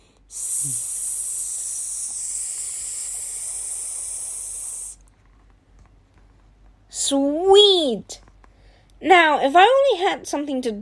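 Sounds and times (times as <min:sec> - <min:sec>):
speech: 0:00.3 - 0:00.9, 0:07.1 - 0:08.2, 0:09.0 - 0:10.7
spray paint can spraying: 0:00.4 - 0:05.0.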